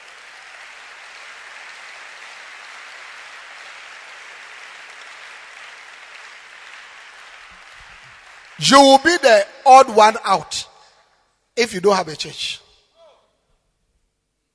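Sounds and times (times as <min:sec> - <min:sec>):
audience clapping hands: 0:00.0 - 0:10.1
speech: 0:08.6 - 0:10.7, 0:11.6 - 0:12.6.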